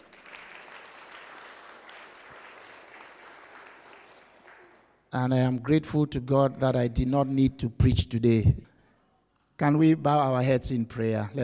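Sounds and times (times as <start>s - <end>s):
audience applause: 0.0s - 5.1s
speech: 5.1s - 8.7s, 9.6s - 11.4s.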